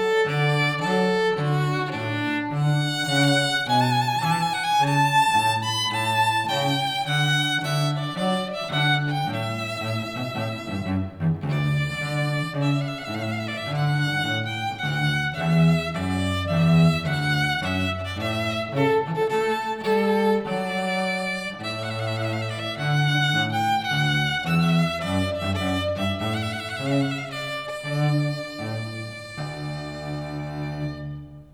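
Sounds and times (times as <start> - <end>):
cello: 0.0 - 31.5.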